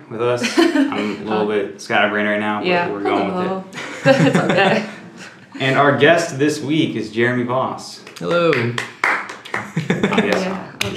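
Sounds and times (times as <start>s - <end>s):
speech: 0.1s - 5.0s, 5.6s - 8.9s, 9.5s - 10.9s
laughter: 0.4s - 1.6s, 3.2s - 6.0s, 9.6s - 10.9s
person clapping for themselves: 8.0s - 10.9s.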